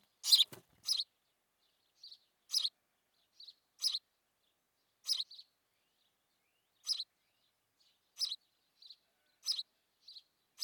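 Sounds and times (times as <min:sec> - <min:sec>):
house sparrow chirping, Passer domesticus: 0:00.2 - 0:01.1, 0:02.0 - 0:02.8, 0:03.4 - 0:04.1, 0:05.0 - 0:05.5, 0:06.7 - 0:07.1, 0:07.8 - 0:10.6.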